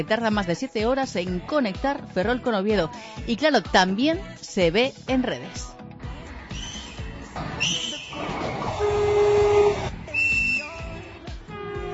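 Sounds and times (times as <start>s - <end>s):
speech: 0.0s - 5.8s, 7.6s - 7.8s
narrow-gauge train whistle blasts: 7.6s - 10.8s, 11.5s - 11.9s.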